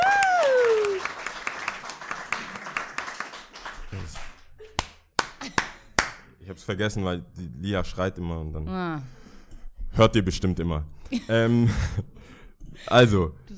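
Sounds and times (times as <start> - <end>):
audience applause at live show: 0.0 - 6.2
laughter: 0.2 - 6.3, 11.0 - 13.2
speech: 6.7 - 9.2, 10.0 - 13.5.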